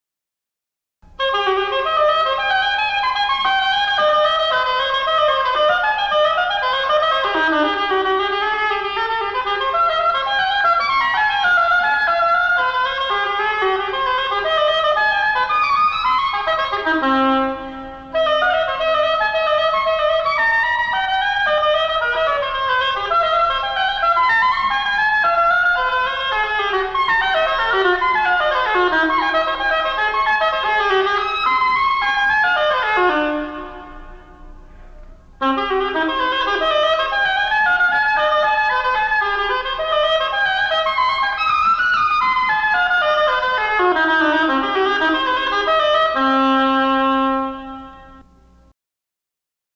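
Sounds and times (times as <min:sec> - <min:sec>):
oboe: 0:01.1 - 0:48.3.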